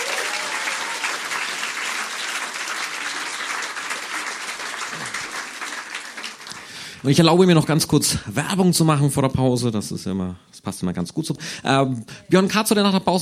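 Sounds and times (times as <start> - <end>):
audience applause: 0.0 - 7.2
speech: 7.0 - 13.2.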